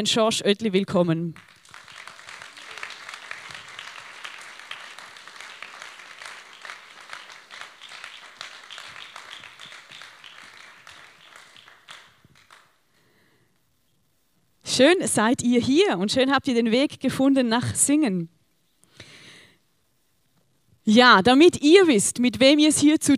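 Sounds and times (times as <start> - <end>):
speech: 0.0 - 1.6, 14.8 - 18.4, 20.8 - 23.1
audience applause welcoming performers: 1.4 - 12.8.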